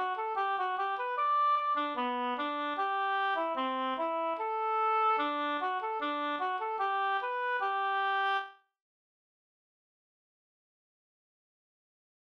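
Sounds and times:
polka music: 0:00.0 - 0:08.5.

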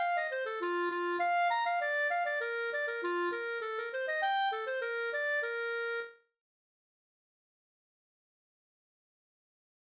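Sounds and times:
polka music: 0:00.0 - 0:06.2.

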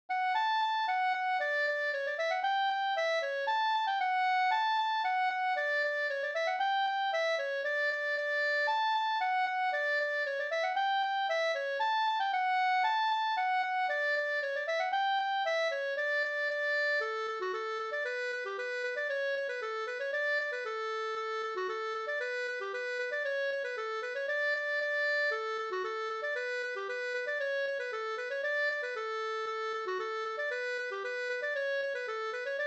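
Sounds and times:
polka music: 0:00.2 - 0:32.6.

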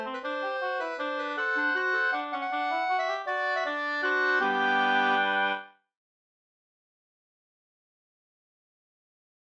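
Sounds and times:
bridal waltz music: 0:00.0 - 0:05.7.

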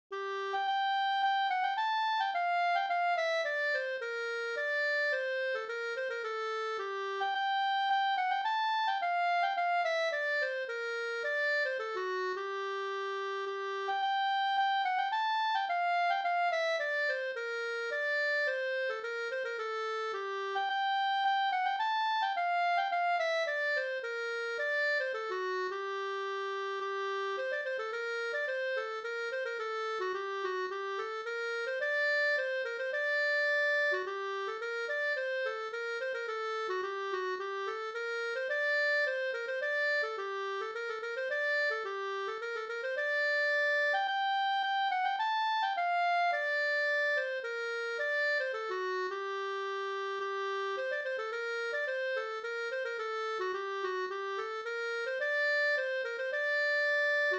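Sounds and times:
polska folk dance tune in G minor: 0:00.1 - 0:57.3.

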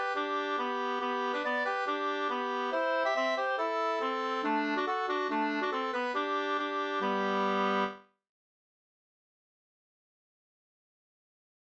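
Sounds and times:
schottische in G major: 0:00.0 - 0:08.0.

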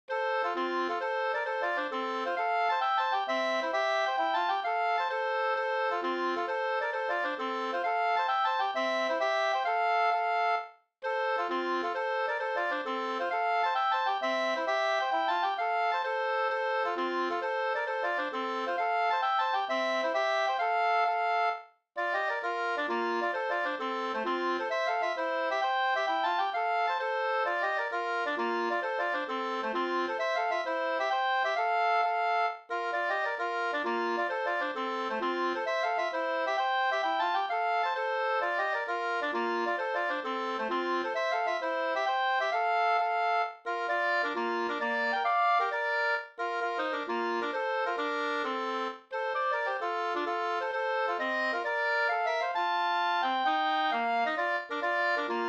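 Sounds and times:
hambo polska dance tune: 0:00.1 - 0:55.4.

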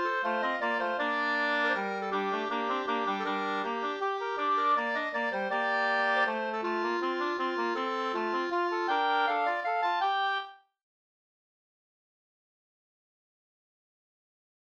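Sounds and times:
two-part wedding waltz: 0:00.0 - 0:10.5.

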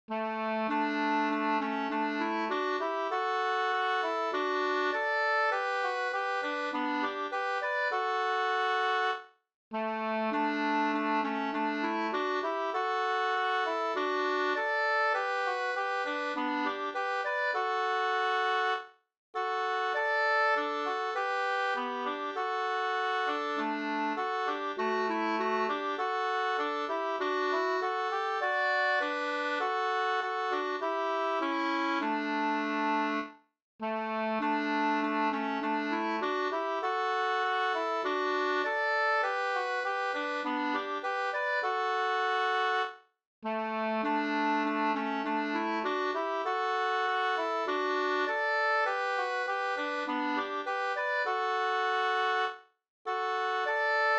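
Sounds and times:
folk song melody: 0:00.1 - 0:09.2, 0:09.8 - 0:18.8, 0:19.4 - 0:54.1.

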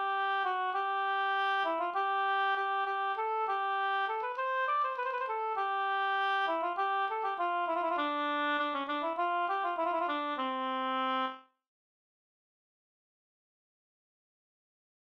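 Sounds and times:
music piece in C major: 0:00.0 - 0:11.4.

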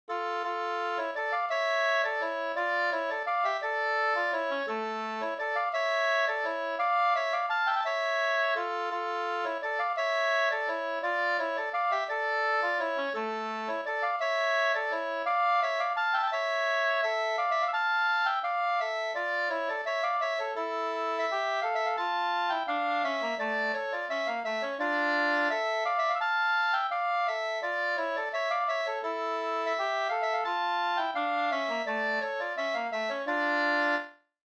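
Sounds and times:
bridal waltz music: 0:00.1 - 0:34.1.

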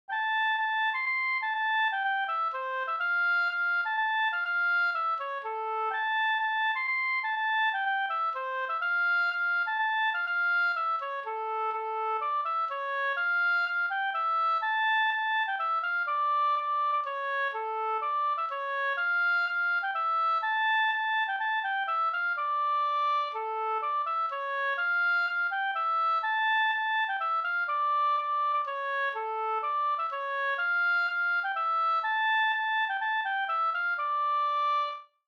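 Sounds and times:
polska folk dance tune: 0:00.1 - 0:35.0.

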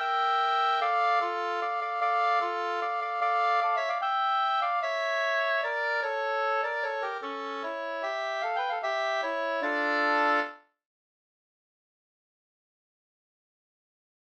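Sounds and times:
bridal waltz music: 0:00.0 - 0:10.6.

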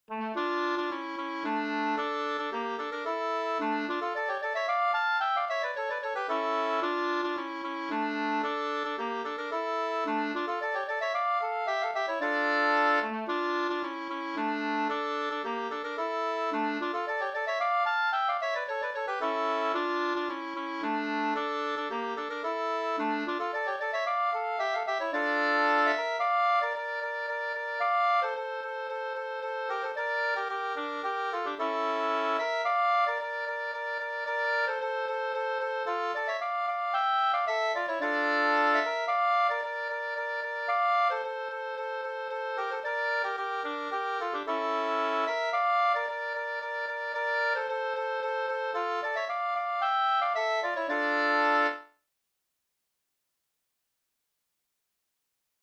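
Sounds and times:
polska folk dance tune in D minor: 0:00.1 - 0:52.0.

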